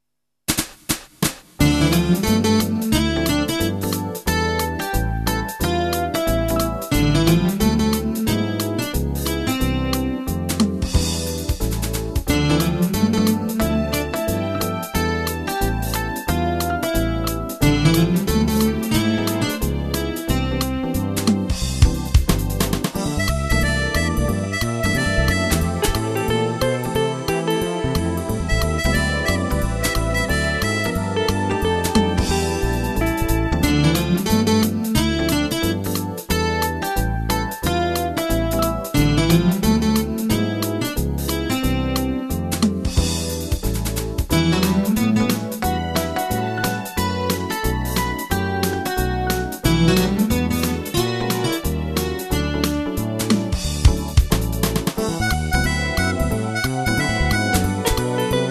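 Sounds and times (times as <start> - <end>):
jazz music: 0.5 - 58.4.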